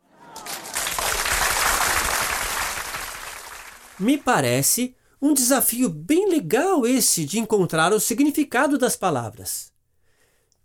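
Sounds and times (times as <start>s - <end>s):
crowd applause: 0.0s - 4.2s
speech: 4.0s - 9.7s.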